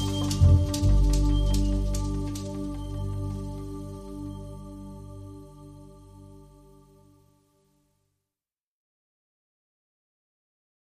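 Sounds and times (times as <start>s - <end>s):
rhythms: 0.0s - 4.3s.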